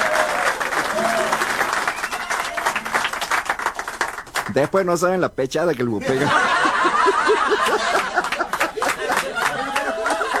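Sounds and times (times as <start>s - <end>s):
audience applause: 0.0s - 4.7s, 7.0s - 10.3s
speech: 4.5s - 6.5s
laughter: 6.0s - 10.3s.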